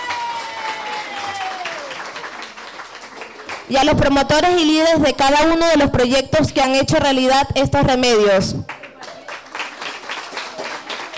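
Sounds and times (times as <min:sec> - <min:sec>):
crowd applauding: 0:00.0 - 0:03.7, 0:08.7 - 0:11.1
speech: 0:03.7 - 0:08.8.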